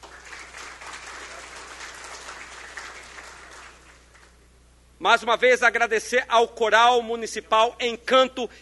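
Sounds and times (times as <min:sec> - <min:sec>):
crowd applause: 0:00.0 - 0:04.3
speech: 0:05.0 - 0:08.6.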